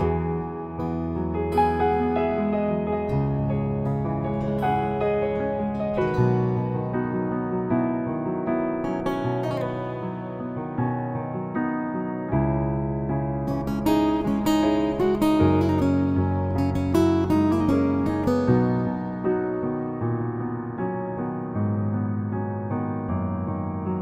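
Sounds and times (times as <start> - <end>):
guitar cover: 0.0 - 24.0
piano cover: 0.0 - 24.0.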